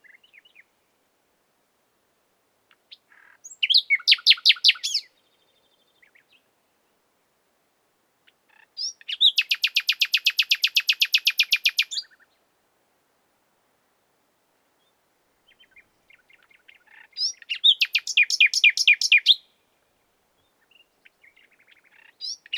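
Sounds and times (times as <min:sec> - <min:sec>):
common nightingale Luscinia megarhynchos singing: 0:00.0 - 0:00.7, 0:02.7 - 0:06.5, 0:08.3 - 0:12.4, 0:14.8 - 0:22.5.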